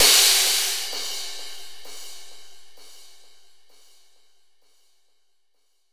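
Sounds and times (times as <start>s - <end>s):
swish crash effect: 0.0s - 0.9s.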